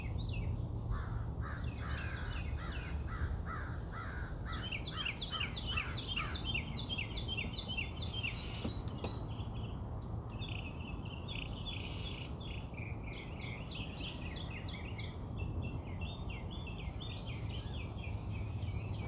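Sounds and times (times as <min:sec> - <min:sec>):
birds chirping: 0:00.0 - 0:19.0
low background noise: 0:00.0 - 0:19.0.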